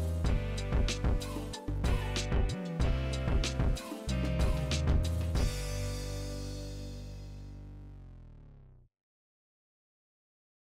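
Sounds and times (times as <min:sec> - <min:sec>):
instrumental music: 0:00.0 - 0:08.0.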